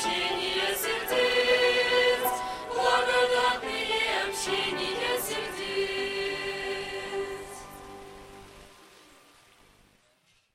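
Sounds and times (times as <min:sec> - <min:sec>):
camp staff singing: 0:00.0 - 0:07.9.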